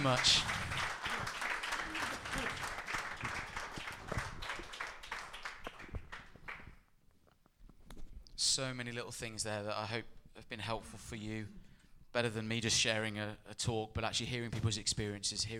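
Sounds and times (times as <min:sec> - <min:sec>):
speech: 0:00.0 - 0:00.6, 0:08.6 - 0:15.5
audience applause: 0:00.0 - 0:06.7.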